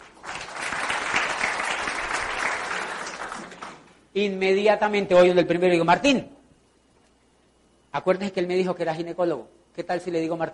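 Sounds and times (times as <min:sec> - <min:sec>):
crowd applauding: 0:00.0 - 0:04.0
speech: 0:04.2 - 0:06.3, 0:07.9 - 0:10.5.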